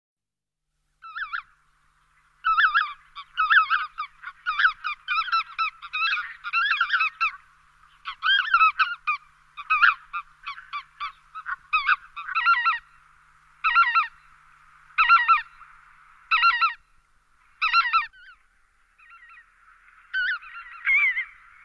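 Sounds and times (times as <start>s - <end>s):
Lesser white-fronted goose honking calls: 2.4s - 12.9s, 13.6s - 14.2s, 15.0s - 15.7s, 16.3s - 16.8s, 17.6s - 18.4s, 20.1s - 21.6s.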